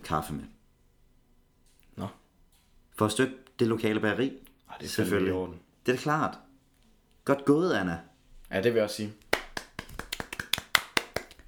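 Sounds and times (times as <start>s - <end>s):
speech: 0.1s - 0.6s, 2.0s - 2.2s, 3.0s - 6.4s, 7.2s - 9.2s
small group clapping: 9.2s - 11.4s.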